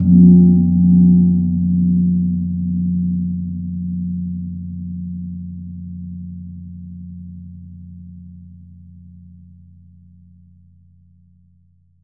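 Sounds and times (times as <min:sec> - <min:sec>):
gong in F2: 0:00.0 - 0:08.5.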